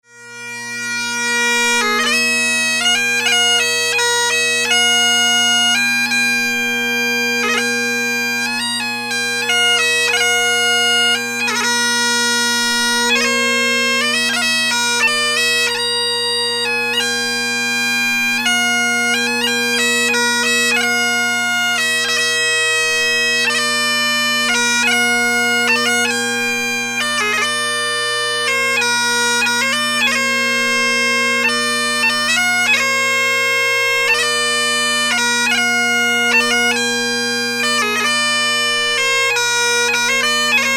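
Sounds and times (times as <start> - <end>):
bagpipes: 0.0 - 40.7.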